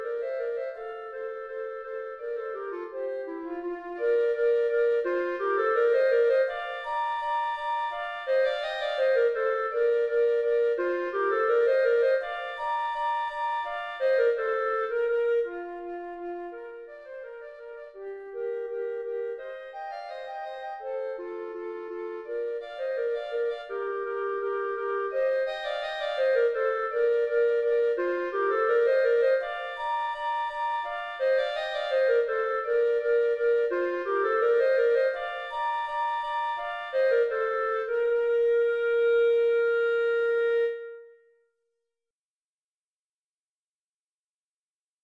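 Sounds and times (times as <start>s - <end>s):
rondeau flute and clarinet duet: 0.0s - 41.5s.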